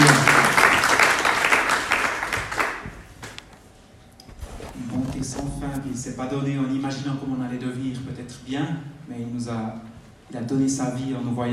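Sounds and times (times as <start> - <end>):
audience applause: 0.0 - 2.9
speech: 6.0 - 11.5.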